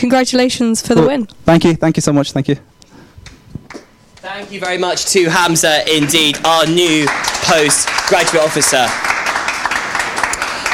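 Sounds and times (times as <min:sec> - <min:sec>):
speech: 0:00.0 - 0:02.8, 0:04.2 - 0:09.1
round of applause from a crowd: 0:04.6 - 0:10.7.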